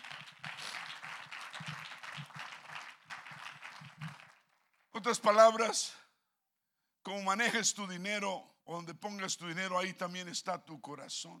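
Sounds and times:
audience applause: 0.0s - 4.6s
speech: 5.0s - 6.0s, 7.1s - 11.3s.

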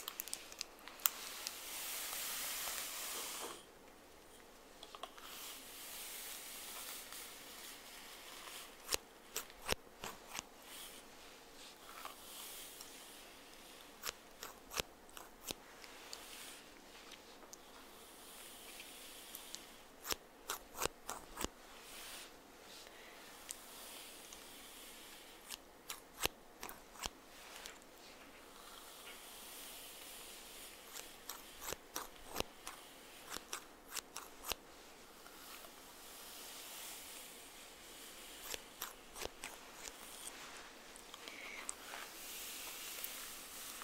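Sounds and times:
hair brushing hiss and rustling: 0.0s - 3.6s, 5.0s - 43.8s
sharp dry brush strokes and clicks: 4.3s - 43.8s.

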